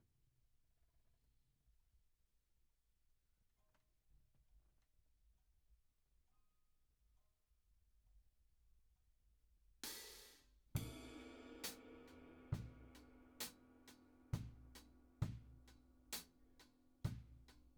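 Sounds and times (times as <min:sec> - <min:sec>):
drums: 0:09.8 - 0:17.7.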